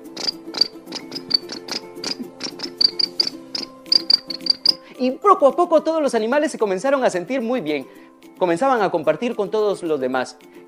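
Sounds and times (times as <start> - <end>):
crickets chirping: 0.0 - 4.8
speech: 5.0 - 10.5.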